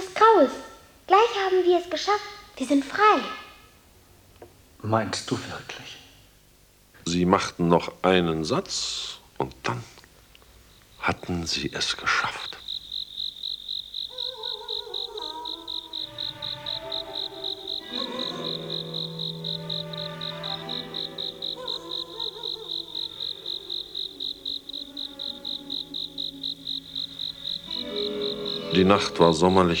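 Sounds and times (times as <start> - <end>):
speech: 0.2 - 3.4, 4.8 - 6.0, 7.1 - 10.0, 11.0 - 12.6, 28.8 - 29.7
cricket chirping on a warm night: 10.4 - 29.7.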